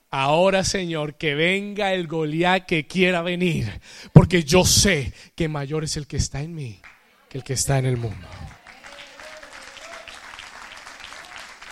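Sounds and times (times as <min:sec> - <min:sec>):
speech: 0:00.1 - 0:08.6
audience applause: 0:07.8 - 0:11.7.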